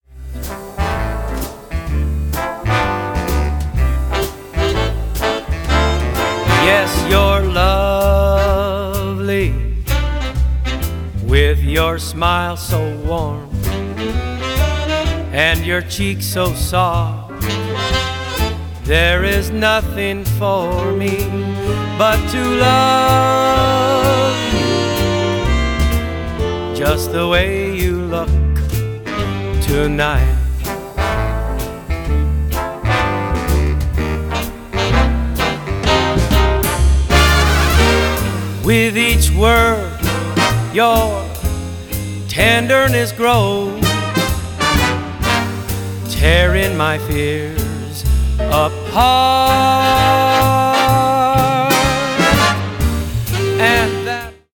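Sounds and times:
big band music: 0.0 - 54.5
man singing: 5.9 - 9.9, 11.2 - 13.6, 15.3 - 17.4, 18.9 - 25.1, 26.7 - 28.7, 29.6 - 31.0, 38.6 - 44.4, 46.0 - 52.7, 53.4 - 54.5.

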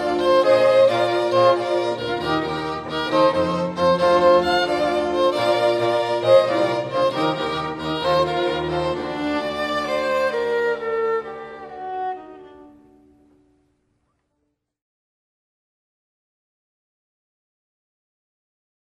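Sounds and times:
string quartet: 0.0 - 13.4.

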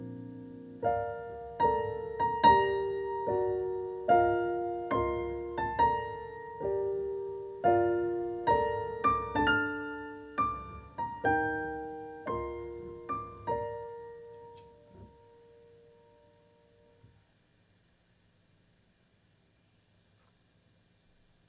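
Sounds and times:
romantic wedding march on classical piano: 0.0 - 16.4.

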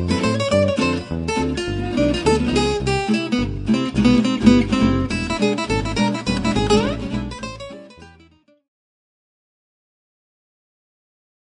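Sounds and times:
Hot Club swing acoustic guitar: 0.0 - 8.5.

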